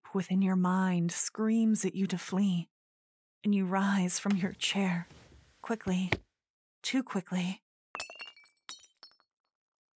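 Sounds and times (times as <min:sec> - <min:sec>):
speech: 0:00.1 - 0:02.7, 0:03.4 - 0:06.2, 0:06.8 - 0:07.6
ceramic teacup crashing and shattering: 0:08.0 - 0:09.2.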